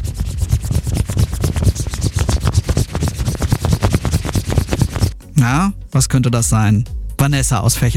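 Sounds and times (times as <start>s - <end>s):
coin rubbing on an air mattress: 0.0s - 5.2s
speech: 5.4s - 7.9s.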